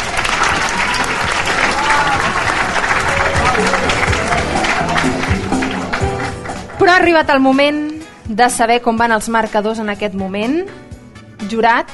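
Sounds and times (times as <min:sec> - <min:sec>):
audience applause: 0:00.0 - 0:07.0
speech: 0:06.8 - 0:11.9.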